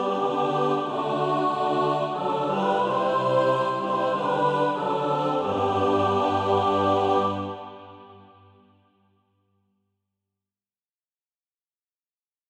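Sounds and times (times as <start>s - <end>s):
mixed SATB choir practice music: 0.0s - 8.6s.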